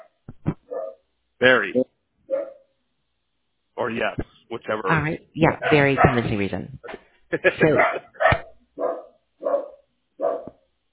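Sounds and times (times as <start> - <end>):
dog barking: 0.7 - 1.0, 2.3 - 2.6, 5.5 - 7.0, 7.6 - 10.6
speech: 1.4 - 1.8, 3.9 - 8.1
laughter: 7.3 - 8.2.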